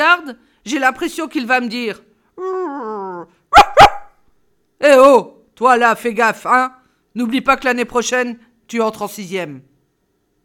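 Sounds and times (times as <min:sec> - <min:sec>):
speech: 0:00.3 - 0:03.7, 0:04.8 - 0:09.7
dog barking: 0:03.5 - 0:04.2.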